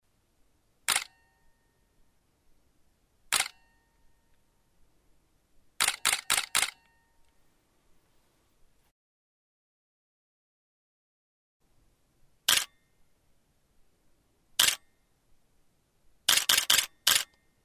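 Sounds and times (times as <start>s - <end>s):
Nikon D800 and D700 camera shutter: 0.9s - 1.3s, 3.3s - 3.7s, 5.8s - 7.0s, 12.5s - 12.8s, 14.6s - 14.9s, 16.3s - 17.4s.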